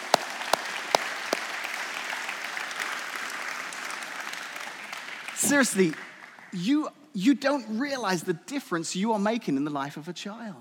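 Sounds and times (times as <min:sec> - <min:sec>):
audience applause: 0:00.0 - 0:06.6
speech: 0:05.4 - 0:10.5.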